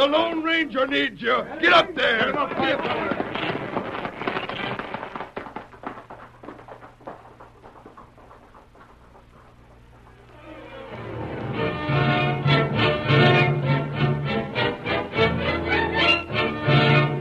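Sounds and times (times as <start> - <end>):
speech: 0.0 - 3.5
low steady hum: 0.0 - 17.1
gunshots fired as a signal: 2.0 - 5.6.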